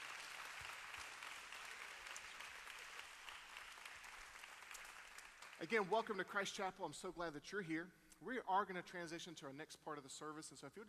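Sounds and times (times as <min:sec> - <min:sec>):
crowd clapping: 0:00.0 - 0:06.5
speech: 0:05.6 - 0:10.8.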